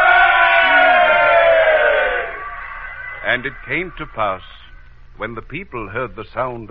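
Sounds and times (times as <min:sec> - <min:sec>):
crowd of people shouting: 0:00.0 - 0:04.3
speech: 0:03.4 - 0:06.6.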